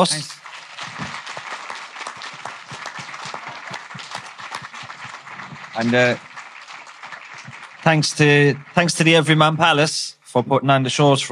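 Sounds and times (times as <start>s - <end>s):
speech: 0.0s - 0.4s, 5.8s - 6.3s, 7.9s - 11.2s
audience applause: 0.0s - 9.9s.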